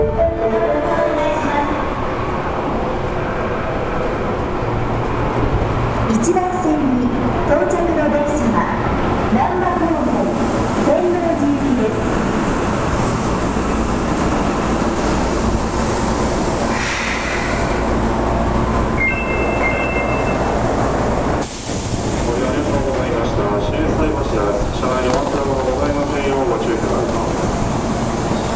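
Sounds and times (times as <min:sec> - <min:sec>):
Midosuji Line train rumble at Shinsaibashi Station: 0:00.0 - 0:28.5
sharp hiss burst: 0:16.6 - 0:17.9
station chimes or announcements: 0:19.0 - 0:20.6.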